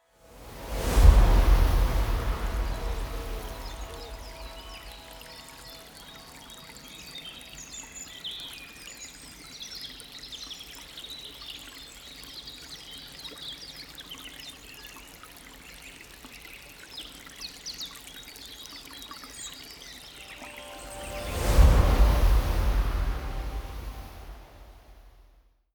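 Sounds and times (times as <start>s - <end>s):
promo synth pad: 0.2s - 6.9s, 20.2s - 25.2s.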